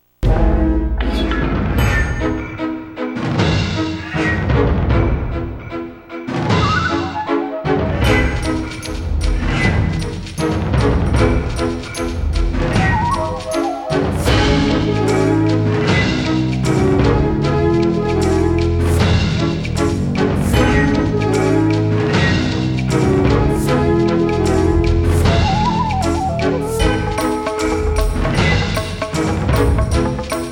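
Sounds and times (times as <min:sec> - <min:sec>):
battle music: 0:00.2 - 0:30.4.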